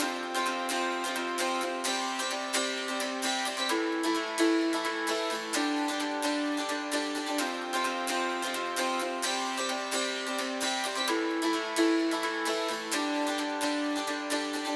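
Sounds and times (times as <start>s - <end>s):
acoustic guitar: 0.0s - 14.7s.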